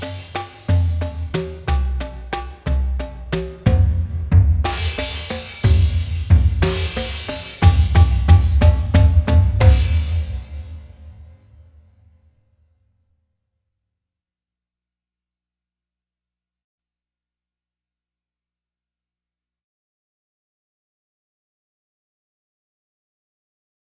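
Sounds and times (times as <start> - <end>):
slow drumline: 0.0 - 11.2.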